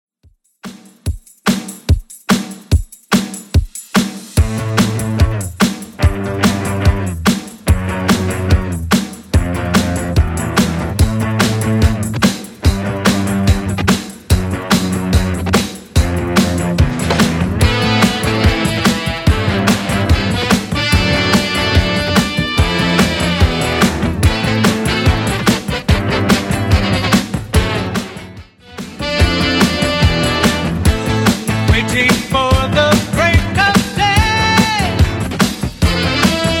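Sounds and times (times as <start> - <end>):
70s rock drum loop: 0.6 - 36.5.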